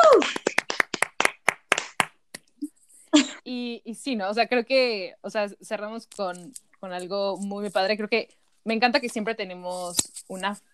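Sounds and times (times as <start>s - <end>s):
hand claps: 0.0s - 2.4s
speech: 3.5s - 10.7s.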